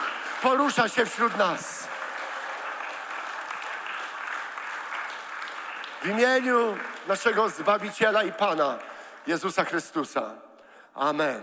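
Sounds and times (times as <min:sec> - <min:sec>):
audience applauding: 0:00.0 - 0:09.1
speech: 0:00.4 - 0:01.8, 0:06.0 - 0:11.4.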